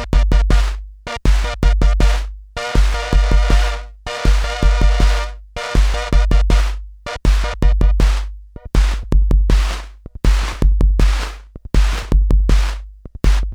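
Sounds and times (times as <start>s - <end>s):
Polymoog synthesizer tempo: 0.0s - 13.4s.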